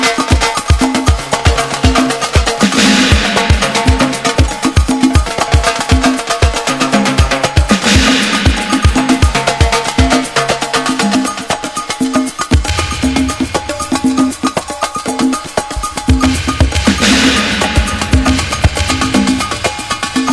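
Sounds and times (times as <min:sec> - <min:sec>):
disco percussion jam: 0:00.0 - 0:20.3.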